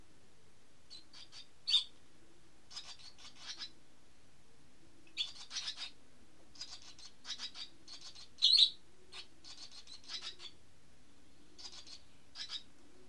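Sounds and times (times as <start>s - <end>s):
bird calls as high chirps and buzzy bursts: 0.9s - 1.9s, 2.7s - 3.8s, 5.1s - 6.0s, 6.6s - 10.6s, 11.6s - 12.7s.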